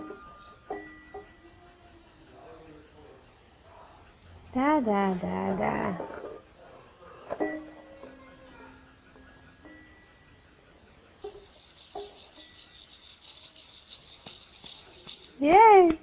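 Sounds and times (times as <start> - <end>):
speech: 4.6 - 6.2
child shaking a rattle: 11.2 - 15.8.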